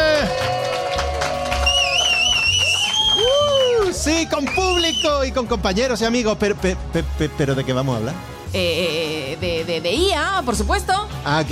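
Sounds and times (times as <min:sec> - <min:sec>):
audience ovation clapping: 0:00.0 - 0:05.1
shrill whistles from crowd: 0:01.6 - 0:05.3
speech: 0:04.2 - 0:11.5.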